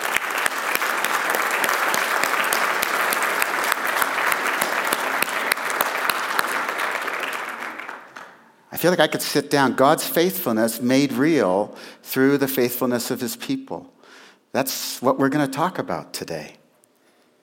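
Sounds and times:
audience clapping to welcome a 101-year-old woman: 0:00.0 - 0:08.6
speech: 0:08.8 - 0:16.6.

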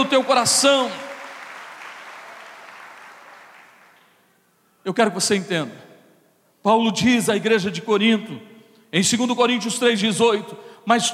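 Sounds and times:
speech: 0:00.0 - 0:01.0, 0:04.8 - 0:05.9, 0:06.6 - 0:11.1
crowd applause: 0:00.0 - 0:04.1.

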